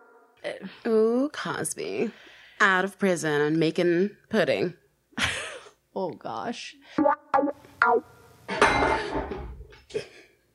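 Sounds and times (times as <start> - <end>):
speech: 0.4 - 5.3, 6.0 - 10.2
wine glass knocked, clinking: 8.5 - 9.2.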